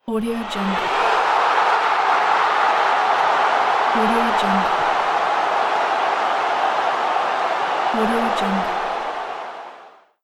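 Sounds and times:
crowd cheering a soccer goal: 0.1 - 10.2.

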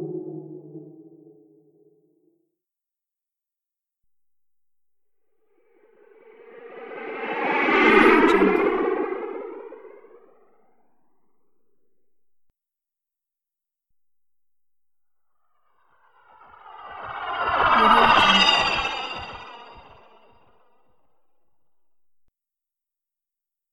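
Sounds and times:
alien ship flying by: 6.0 - 10.5, 16.0 - 20.3.

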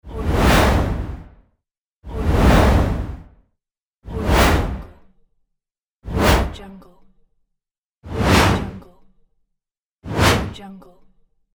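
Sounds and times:
whoosh: 0.1 - 1.4, 2.1 - 3.4, 4.1 - 5.0, 6.1 - 6.6, 8.1 - 8.8, 10.1 - 10.6.

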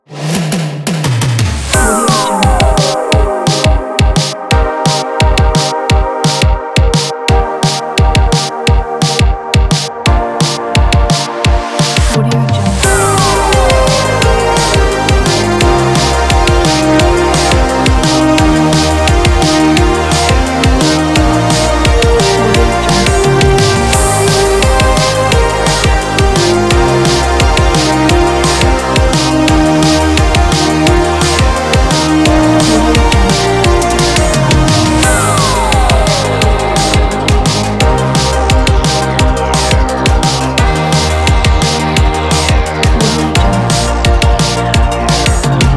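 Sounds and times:
disco music: 0.0 - 45.7.

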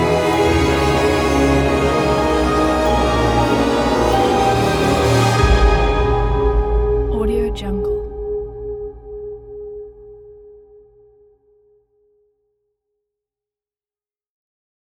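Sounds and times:
airy dramatic music introduction: 0.0 - 11.3.

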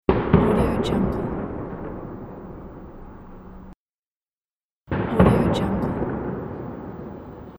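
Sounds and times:
big firecracker explosion: 0.1 - 3.8, 4.9 - 7.5.

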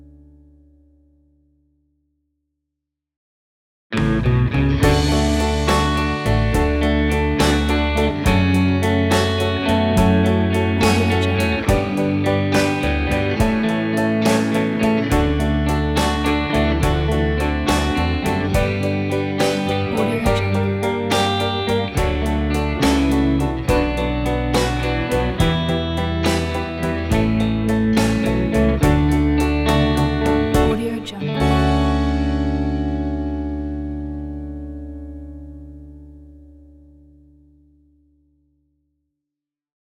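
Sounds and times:
doo-wop music: 4.0 - 35.8.

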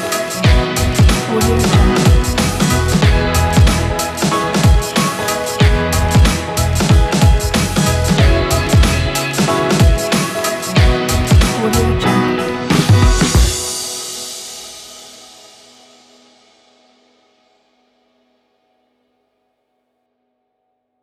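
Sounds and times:
hip hop music: 0.0 - 15.1.

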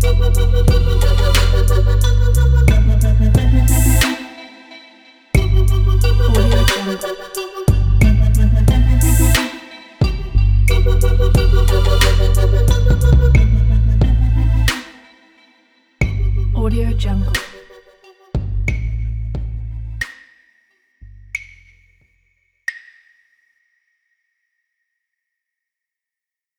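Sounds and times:
downtempo sci-fi trap music: 0.0 - 20.0.

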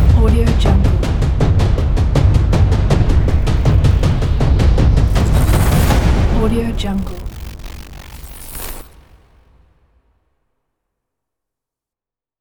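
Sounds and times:
cinematic drums logo ident: 0.0 - 8.9.

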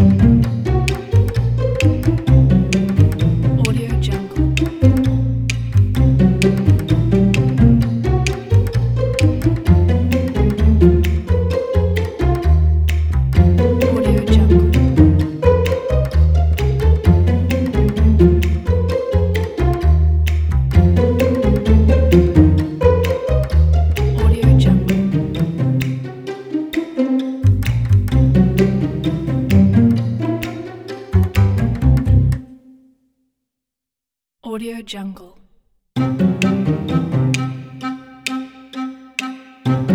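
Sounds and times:
comic pizzicato strings for kids: 0.0 - 32.8, 36.0 - 39.9.

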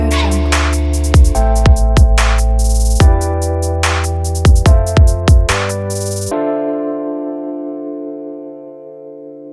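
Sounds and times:
future bass music: 0.0 - 6.3.

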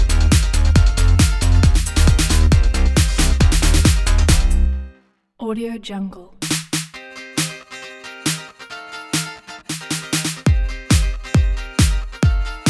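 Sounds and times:
fast dance pop logo jingle: 0.0 - 4.7, 9.2 - 12.6.

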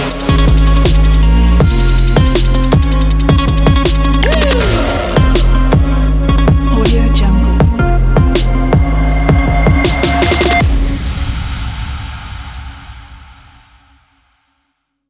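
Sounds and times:
trap beat: 0.0 - 10.6.

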